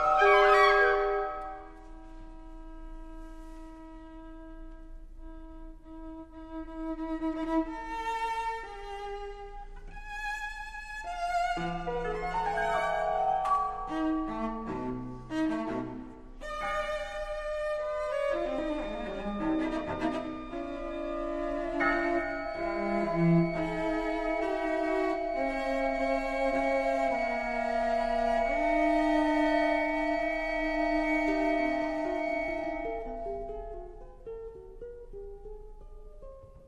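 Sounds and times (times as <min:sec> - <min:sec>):
chamber ensemble playing: 0:00.0 - 0:01.8, 0:10.9 - 0:34.3
cello playing a concerto: 0:00.0 - 0:36.6.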